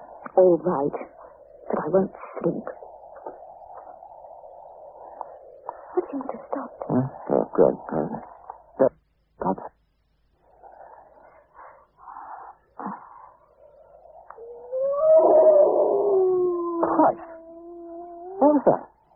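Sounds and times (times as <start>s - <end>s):
speech: 0.4s - 1.2s, 1.8s - 2.8s, 6.9s - 9.7s
dog howling: 14.2s - 18.6s.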